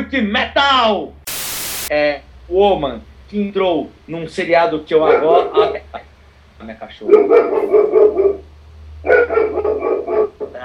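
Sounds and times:
speech: 0.0s - 1.2s, 1.9s - 8.0s
dog barking: 5.0s - 5.6s, 7.0s - 10.6s.

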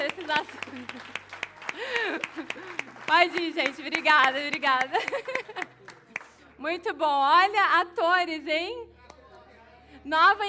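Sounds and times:
audience applause: 0.0s - 6.4s
laughter: 0.2s - 3.1s, 4.7s - 6.1s
speech: 0.3s - 1.2s, 1.8s - 5.8s, 6.6s - 8.9s, 10.0s - 10.4s.

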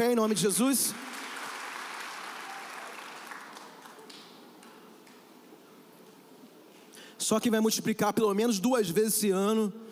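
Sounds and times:
speech: 0.0s - 1.2s, 7.3s - 9.9s
audience applause: 1.0s - 4.9s.

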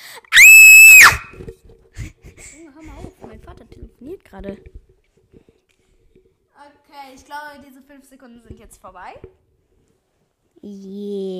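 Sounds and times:
person screaming into the microphone: 0.4s - 1.3s
speech: 4.0s - 4.8s, 7.3s - 9.4s, 10.6s - 11.3s.

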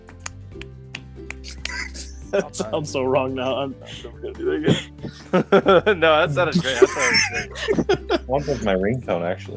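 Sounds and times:
golf clap, soft polite clapping: 0.0s - 2.2s
laughter: 1.5s - 3.1s, 3.9s - 8.7s
speech: 2.3s - 9.5s.

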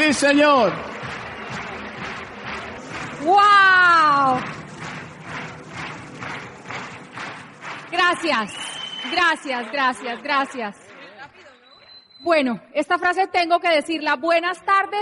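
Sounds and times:
audience applause: 0.0s - 12.0s
speech: 0.1s - 1.1s, 3.2s - 4.6s, 7.9s - 10.8s, 12.2s - 14.9s.

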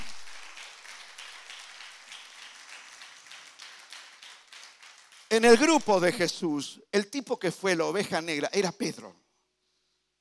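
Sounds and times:
crowd applauding: 0.0s - 6.1s
speech: 5.4s - 9.2s.

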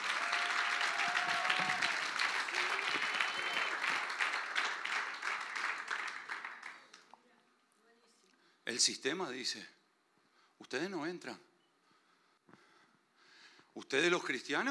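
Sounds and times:
audience applauding loudly: 0.0s - 7.2s
speech: 8.8s - 9.8s, 10.7s - 11.5s, 13.8s - 14.6s.

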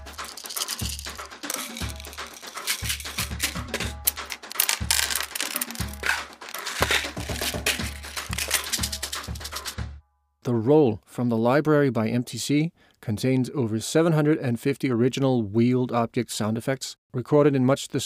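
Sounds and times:
pill bottles rattling: 0.0s - 9.8s
speech: 10.5s - 18.0s.

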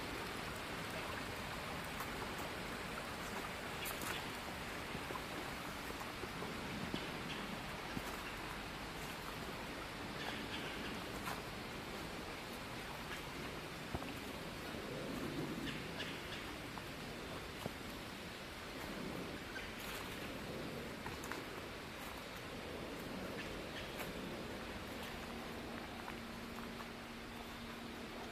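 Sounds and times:
dense rain-like hiss with crackles on a fall nature walk: 0.0s - 28.3s
low steady hum: 0.0s - 28.3s.

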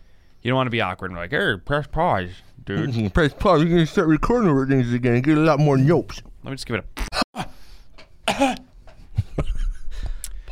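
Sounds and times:
speech: 0.4s - 7.2s
coughing: 8.2s - 8.8s.

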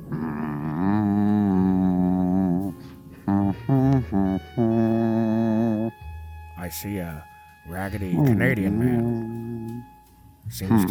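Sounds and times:
person humming a melody: 0.0s - 6.1s, 8.1s - 10.0s
speech: 6.7s - 9.2s, 10.5s - 10.9s.

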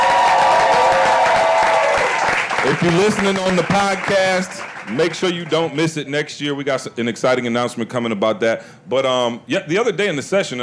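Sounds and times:
live studio audience applauding and cheering: 0.0s - 5.9s
speech: 2.8s - 10.6s.

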